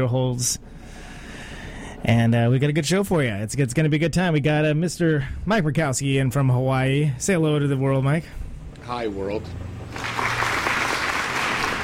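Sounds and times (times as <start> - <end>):
speech: 0.0 - 0.8, 2.0 - 10.1
talk show studio audience applauding a guest: 9.9 - 11.8.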